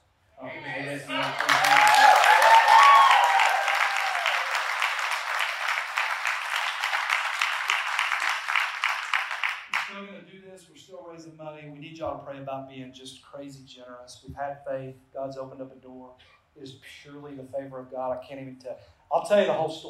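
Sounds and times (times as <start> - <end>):
audience applause: 1.0 - 9.9
speech: 12.2 - 19.8.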